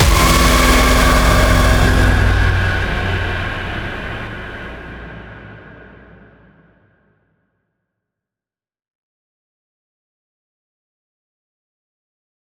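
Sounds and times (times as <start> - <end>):
jump scare sting: 0.0 - 5.7.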